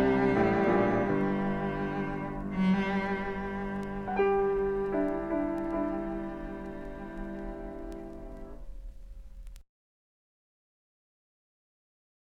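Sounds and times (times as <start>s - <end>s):
oriental melody: 0.0s - 8.6s.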